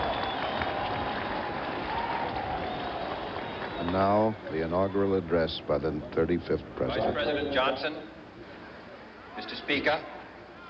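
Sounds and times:
crowd cheering and applauding: 0.0s - 4.0s
speech: 3.8s - 8.1s, 9.4s - 10.1s.

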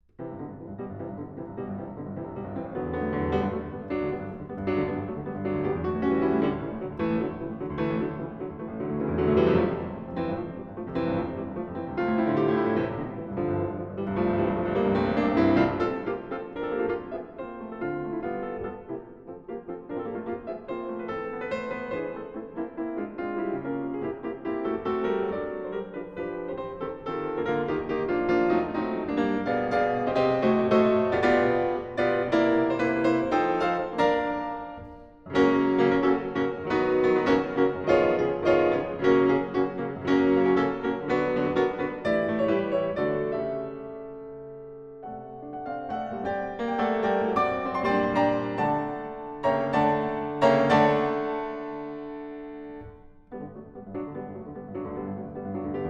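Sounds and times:
piano suite: 0.0s - 55.8s.

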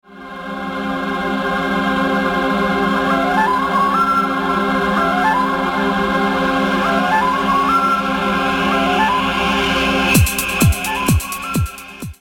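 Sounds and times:
flute: 0.1s - 12.2s.

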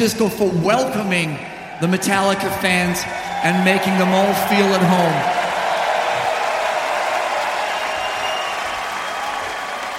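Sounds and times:
speech: 0.0s - 5.4s
audience applause: 2.8s - 9.9s.

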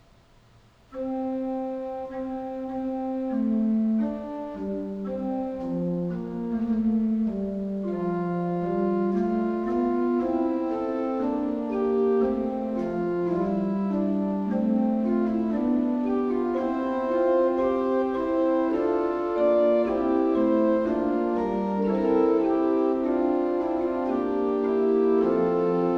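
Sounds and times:
organ fugue: 0.7s - 25.9s.

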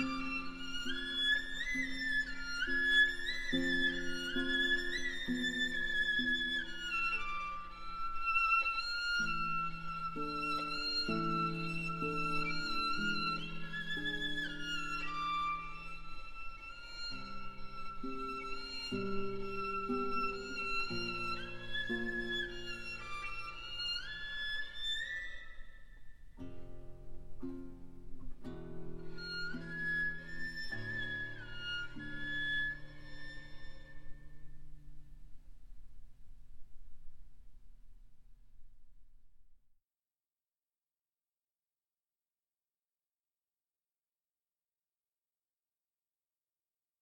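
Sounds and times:
violin playing a Romanian folk dance: 0.0s - 37.2s
guitar playing a Romanian folk dance: 0.0s - 37.5s.

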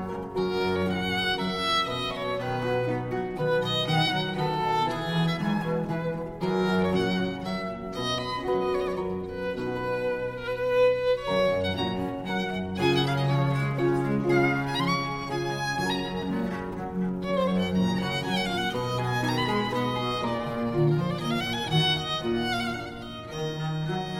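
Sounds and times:
solo violin, two cellos and strings in C major: 0.0s - 24.1s.

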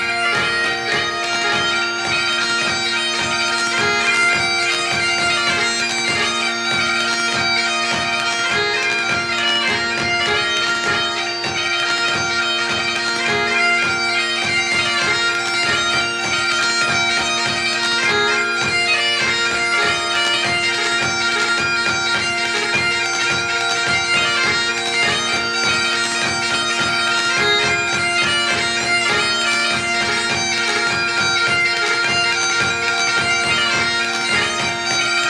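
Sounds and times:
strings playing a hornpipe in Liverpool: 0.0s - 35.2s.

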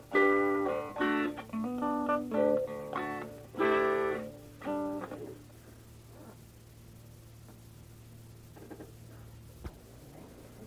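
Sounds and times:
instrumental music: 0.0s - 5.5s.

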